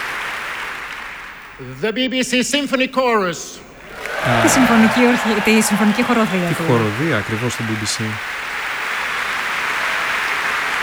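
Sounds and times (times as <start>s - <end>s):
audience applause at a choir concert: 0.0s - 10.8s
speech: 1.6s - 8.5s
laughter: 1.6s - 10.3s.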